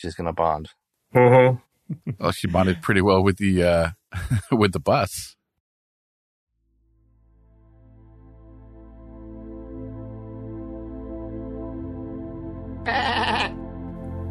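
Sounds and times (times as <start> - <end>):
speech: 0.0 - 5.4, 12.8 - 13.4
laughter: 1.2 - 3.0, 4.1 - 4.7
synthetic robotic-sounding sheep bleat: 12.8 - 13.6.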